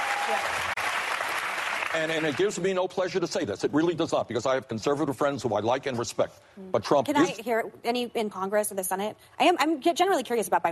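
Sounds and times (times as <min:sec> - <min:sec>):
audience applause: 0:00.0 - 0:02.6
speech: 0:00.3 - 0:00.8, 0:01.9 - 0:10.7.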